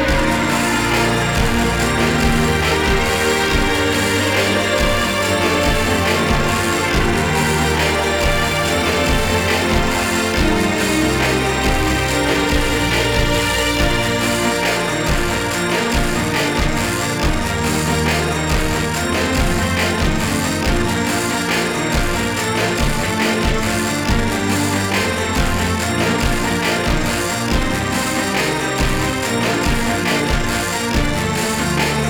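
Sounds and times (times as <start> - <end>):
karaoke backing track: 0.1 - 32.0.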